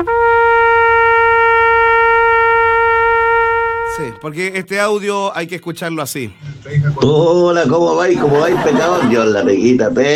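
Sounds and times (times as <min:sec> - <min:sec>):
horn (corneta) blaring: 0:00.1 - 0:04.4
speech: 0:04.3 - 0:10.1
laughter: 0:07.9 - 0:09.8.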